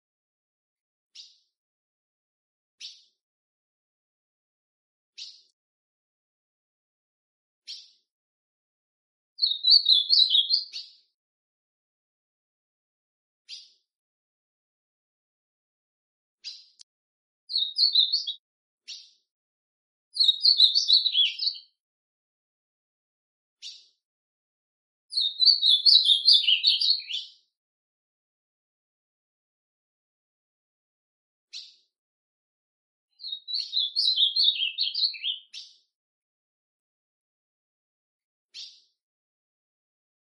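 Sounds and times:
ultramarine grosbeak song: 1.1s - 1.6s, 2.8s - 3.2s, 5.2s - 5.6s, 7.6s - 8.1s, 9.4s - 11.2s, 13.5s - 13.8s, 16.4s - 16.8s, 17.5s - 19.3s, 20.1s - 21.8s, 23.6s - 24.0s, 25.1s - 27.5s, 31.5s - 31.9s, 33.1s - 35.9s, 38.5s - 39.0s.

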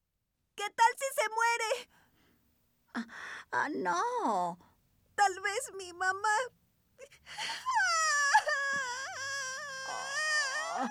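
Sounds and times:
speech: 0.6s - 2.0s, 3.0s - 8.1s, 10.8s - 10.9s
girl crying in a Spanish-dubbed film: 7.0s - 10.9s.

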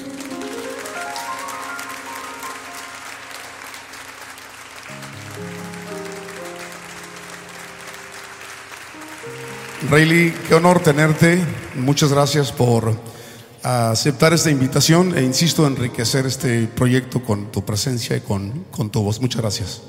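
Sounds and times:
audience applause welcoming a guest: 0.0s - 13.0s
speech: 9.8s - 19.8s.

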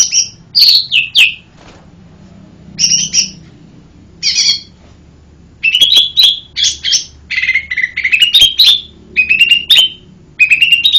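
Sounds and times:
bird singing lively high chirped phrases: 0.0s - 1.5s, 2.8s - 3.4s, 4.2s - 4.8s, 5.6s - 10.9s.

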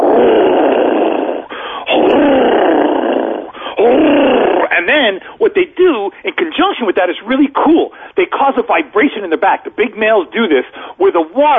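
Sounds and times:
person imitating an alligator's mating bellow: 0.0s - 5.0s
speech: 4.8s - 11.5s.

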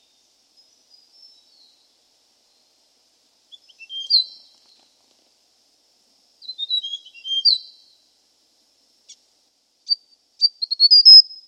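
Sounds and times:
hill prinia chirping and whistled trill: 3.6s - 4.4s, 6.4s - 7.7s, 9.9s - 11.4s.

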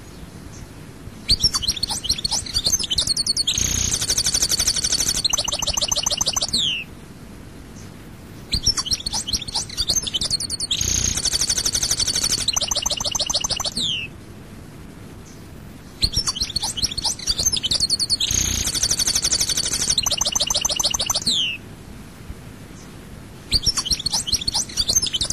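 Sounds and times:
European goldfinch singing: 1.3s - 6.9s, 8.5s - 14.1s, 15.3s - 21.6s, 23.5s - 25.3s.

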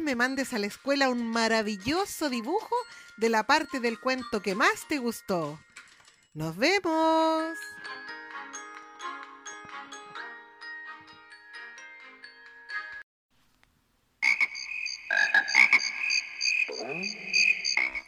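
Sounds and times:
speech: 0.1s - 5.7s, 6.4s - 8.0s
frogs croaking in a dense rhythmic chorus: 14.2s - 18.0s.

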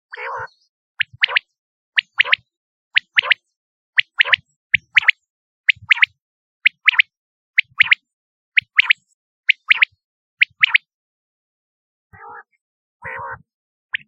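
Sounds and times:
quail giving high clipped chirping notes in doublets: 0.1s - 2.4s, 3.0s - 3.4s, 4.0s - 8.0s, 8.6s - 10.9s, 12.2s - 14.0s.

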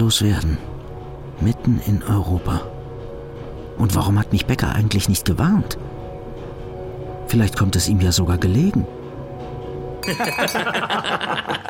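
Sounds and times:
speech: 0.0s - 0.7s, 1.4s - 2.7s, 3.8s - 6.0s, 7.3s - 9.0s, 10.0s - 11.6s
glasses clinking in a toast: 10.0s - 11.0s
laughter: 10.1s - 11.6s.

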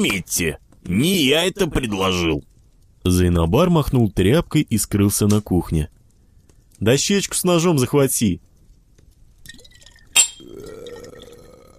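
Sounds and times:
speech: 0.0s - 6.0s, 6.8s - 8.5s
liquid pouring into a small glass: 9.4s - 11.7s
glass clink: 9.8s - 10.6s.

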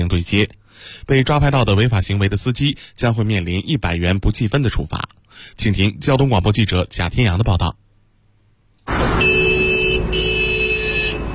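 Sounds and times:
speech: 0.0s - 7.8s, 8.9s - 9.3s
steady traffic noise at the Huangzhuang intersection in Haidian District, Beijing: 7.8s - 11.3s
black Hyundai sedan horn honking at the Huangzhuang intersection, Beijing: 8.9s - 11.3s.

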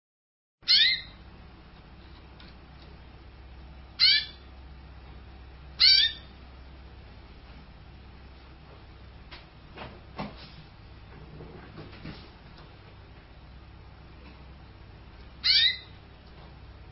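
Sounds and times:
canary song with high whistles, buzzy rattles and trills: 0.6s - 1.4s, 3.6s - 4.7s, 5.6s - 6.5s, 15.0s - 16.3s.

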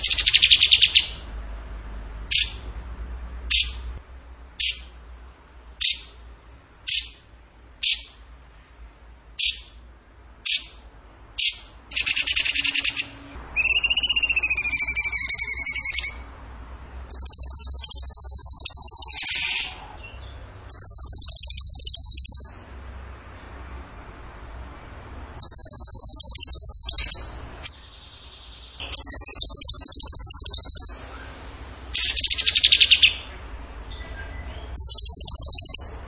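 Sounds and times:
bird trilling: 0.0s - 1.3s, 2.3s - 2.7s, 3.5s - 3.9s, 4.6s - 5.0s, 5.8s - 6.2s, 6.9s - 7.2s, 7.8s - 8.2s, 9.4s - 9.8s, 10.4s - 10.8s, 11.4s - 16.4s, 17.1s - 22.7s, 25.4s - 31.2s, 31.9s - 33.4s, 34.6s - 36.0s.

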